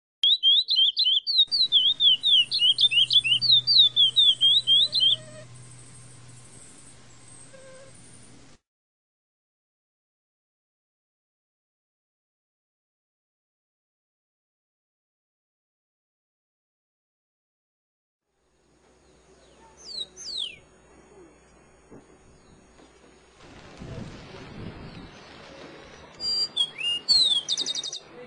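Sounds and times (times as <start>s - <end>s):
birds: 0.2s - 8.6s, 18.9s - 23.8s, 24.6s - 28.2s.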